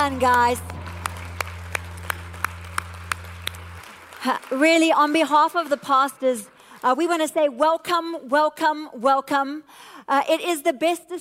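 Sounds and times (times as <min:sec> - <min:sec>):
speech: 0:00.0 - 0:00.7, 0:04.2 - 0:11.2
audience applause: 0:00.0 - 0:06.8.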